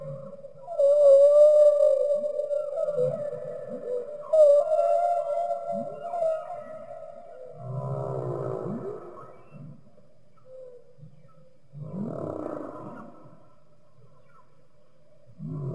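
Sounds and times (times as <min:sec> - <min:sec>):
humpback whale song: 0:00.0 - 0:09.8.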